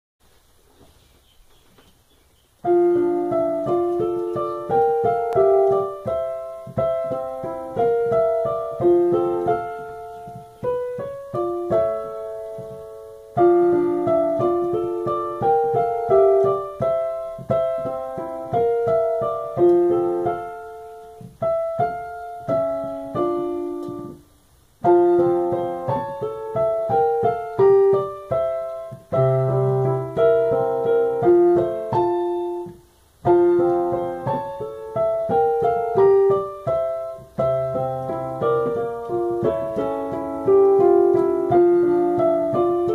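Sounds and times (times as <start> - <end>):
piano: 1.0 - 42.9.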